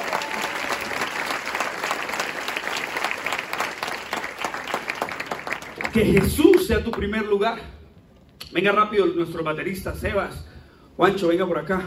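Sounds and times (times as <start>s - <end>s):
audience applauding: 0.0s - 7.0s
speech: 6.0s - 7.8s, 8.5s - 11.8s.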